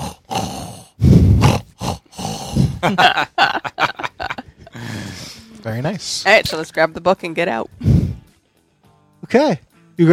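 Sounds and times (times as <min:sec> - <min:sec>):
voice imitating gentle snoring: 0:00.0 - 0:03.0
higher wheezing vocal noises: 0:00.0 - 0:03.1, 0:04.5 - 0:05.6, 0:07.8 - 0:08.3
laughter: 0:02.8 - 0:05.0
speech: 0:02.9 - 0:03.3, 0:05.9 - 0:08.0, 0:09.3 - 0:10.1.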